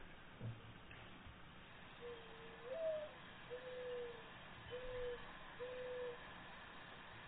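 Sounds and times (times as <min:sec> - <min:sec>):
quiet hiss: 0:00.0 - 0:07.2
dove coo played from phone: 0:02.0 - 0:06.2.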